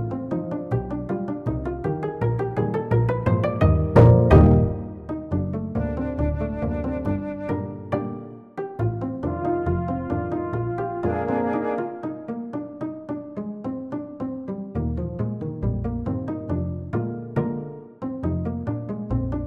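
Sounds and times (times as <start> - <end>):
upright bass pizzicato: 0.0 - 19.4
flute: 5.8 - 8.3, 9.5 - 12.3.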